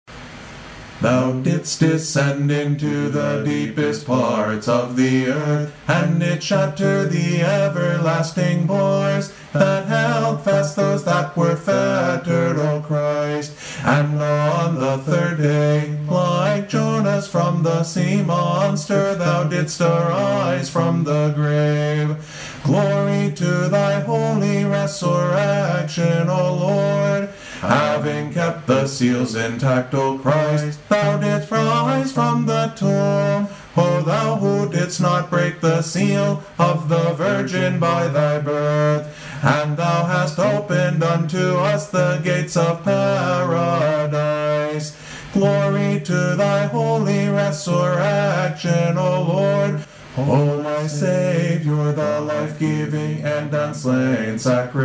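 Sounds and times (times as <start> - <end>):
ode chant: 1.0 - 54.8.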